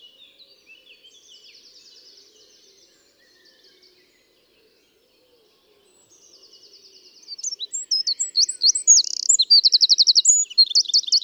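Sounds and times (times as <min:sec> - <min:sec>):
Eurasian wren Troglodytes troglodytes singing: 0:07.3 - 0:11.2.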